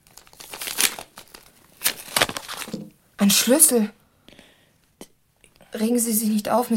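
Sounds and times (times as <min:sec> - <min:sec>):
envelope being ripped open: 0:00.0 - 0:02.9
speech: 0:03.2 - 0:04.0, 0:05.8 - 0:06.7.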